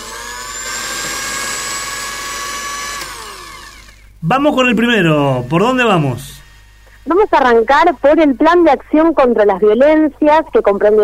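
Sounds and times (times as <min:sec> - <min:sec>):
blender running: 0:00.0 - 0:04.2, 0:04.8 - 0:06.9
speech: 0:04.2 - 0:06.3, 0:07.1 - 0:11.0.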